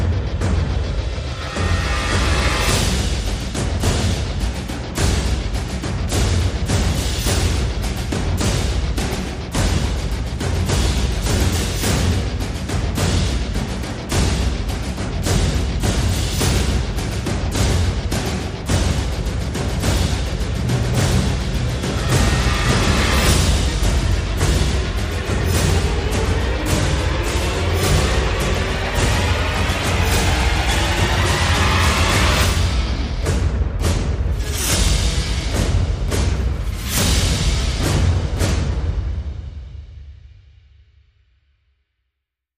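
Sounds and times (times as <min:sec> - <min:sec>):
percussion: 0:00.0 - 0:41.0
pulses: 0:20.8 - 0:33.1.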